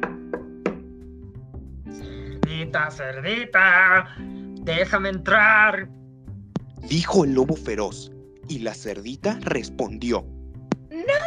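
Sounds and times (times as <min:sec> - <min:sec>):
knocking on a door: 0:00.0 - 0:00.9
speech: 0:02.6 - 0:06.0, 0:06.8 - 0:10.3.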